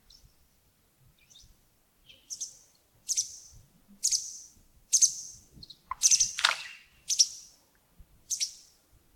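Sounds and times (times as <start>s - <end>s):
bird chirps: 2.1s - 7.5s, 8.3s - 8.7s.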